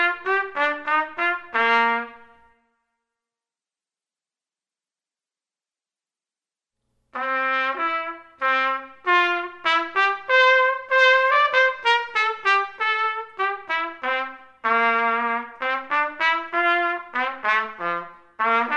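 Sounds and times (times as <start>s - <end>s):
trumpet playing a minuet: 0.0s - 2.8s, 7.1s - 18.7s.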